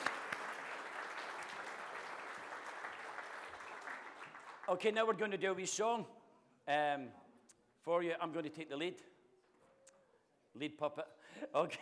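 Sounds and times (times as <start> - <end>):
crowd clapping: 0.0 - 5.2
speech: 4.7 - 7.2, 7.8 - 9.1, 10.6 - 11.8.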